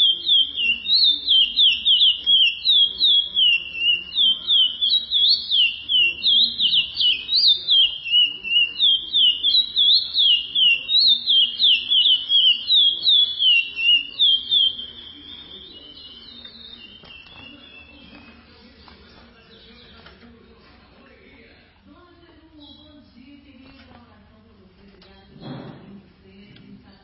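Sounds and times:
Chestnut-bellied seed finch song: 0.0 - 20.1.

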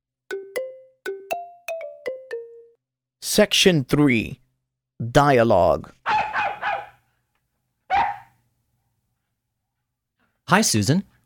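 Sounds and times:
speech: 3.3 - 4.4, 5.0 - 6.0, 10.5 - 11.1
two huge black twin dogs barking: 6.1 - 7.0, 7.9 - 8.4.

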